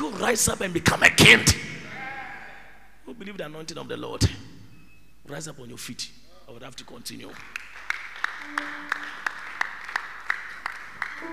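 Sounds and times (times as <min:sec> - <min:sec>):
speech: 0:00.2 - 0:01.7, 0:03.1 - 0:04.5, 0:05.2 - 0:07.7, 0:08.4 - 0:09.2, 0:11.2 - 0:11.3
audience clapping hands: 0:07.2 - 0:11.3.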